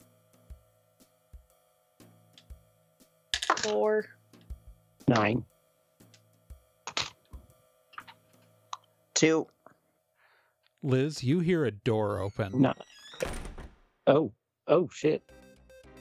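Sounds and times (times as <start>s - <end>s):
dice rolling: 3.4s - 3.8s, 6.9s - 7.1s
speech: 3.6s - 4.2s, 5.1s - 5.5s, 9.2s - 9.6s, 10.8s - 12.9s, 14.1s - 15.4s.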